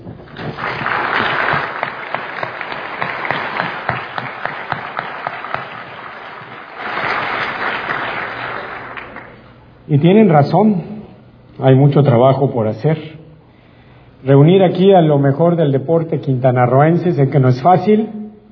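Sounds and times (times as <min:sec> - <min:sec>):
audience applause at a sports awards ceremony in Quintana Roo: 0:00.0 - 0:09.4
speech: 0:09.9 - 0:10.9, 0:11.6 - 0:13.2, 0:14.2 - 0:18.2.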